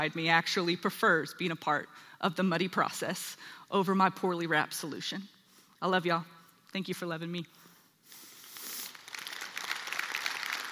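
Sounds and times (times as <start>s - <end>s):
speech: 0.0s - 7.6s
audience applause: 9.0s - 10.6s.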